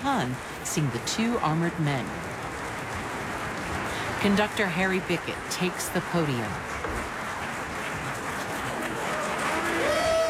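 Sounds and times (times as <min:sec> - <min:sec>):
speech: 0:00.0 - 0:02.3, 0:04.2 - 0:06.8
opera audience applause for an orchestra: 0:02.3 - 0:10.2.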